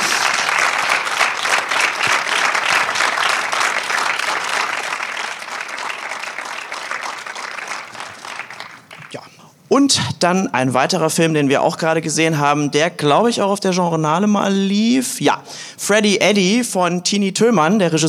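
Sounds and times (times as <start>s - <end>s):
audience applause: 0.0s - 9.2s
speech: 9.7s - 18.0s.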